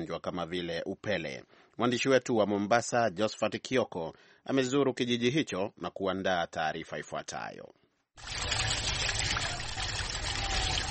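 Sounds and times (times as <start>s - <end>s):
speech: 0.0s - 8.6s
hot spring water trickling at Maji Moto spring, Lunga Lunga, Kenya: 8.2s - 10.8s.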